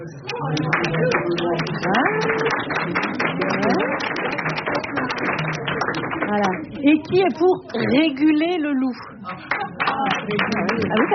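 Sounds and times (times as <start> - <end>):
audience applause as a vote: 0.4 - 6.6, 9.5 - 11.1
speech: 6.8 - 9.1, 10.3 - 11.1.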